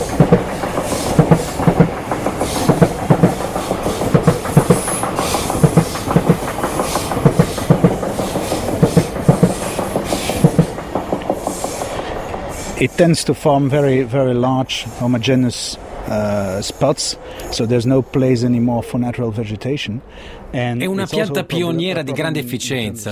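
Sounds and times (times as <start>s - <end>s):
train wheels beating a clickety-clack rhythm: 0.0s - 12.9s
train passing on railway tracks: 0.0s - 23.1s
speech: 13.0s - 23.1s.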